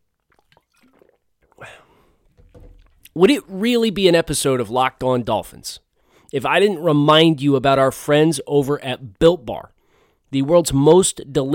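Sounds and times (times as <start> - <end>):
person sipping a drink: 0.1 - 3.1
speech: 3.2 - 11.5.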